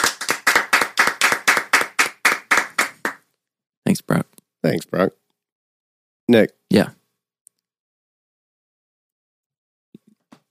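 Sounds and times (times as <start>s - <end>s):
round of applause: 0.0s - 3.2s
speech: 3.9s - 5.2s, 6.3s - 7.0s.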